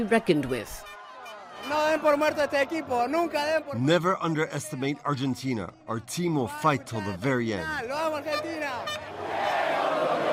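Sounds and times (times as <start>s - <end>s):
speech: 0.0s - 0.9s, 1.7s - 9.6s
crowd of football fans cheering their team in a Buenos Aires park: 0.0s - 4.0s, 8.7s - 10.3s.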